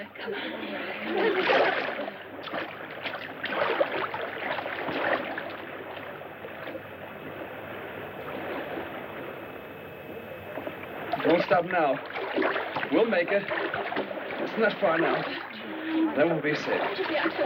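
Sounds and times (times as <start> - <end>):
speech: 0.0 - 1.5, 11.5 - 13.6, 14.6 - 15.4, 16.2 - 17.4
hands paddling in water as a boat drifts toward land: 1.1 - 17.4.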